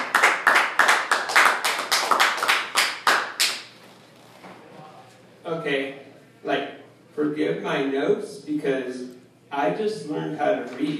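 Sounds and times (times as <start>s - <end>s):
audience applause for the next performer: 0.0s - 3.5s
speech: 7.3s - 10.9s.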